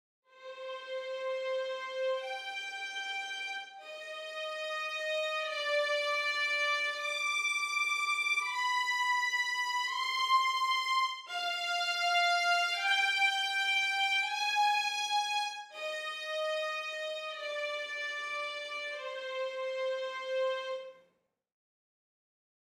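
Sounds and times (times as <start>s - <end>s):
violins: 0.3s - 21.0s.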